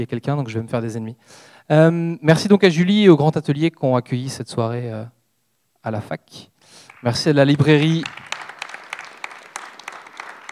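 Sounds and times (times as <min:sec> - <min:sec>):
speech: 0:00.0 - 0:05.2, 0:05.8 - 0:08.3
faint audience applause at a comics conference: 0:06.8 - 0:10.5.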